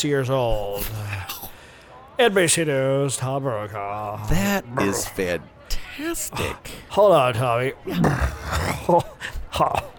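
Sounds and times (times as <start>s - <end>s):
speech: 0.0s - 1.4s, 2.2s - 9.9s
low guttural burp: 7.9s - 9.0s.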